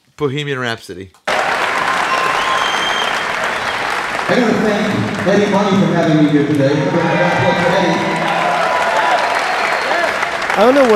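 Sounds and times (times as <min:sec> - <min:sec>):
speech: 0:00.2 - 0:01.2, 0:04.3 - 0:08.2, 0:10.6 - 0:10.9
large theater audience applause on a recording: 0:01.3 - 0:10.9.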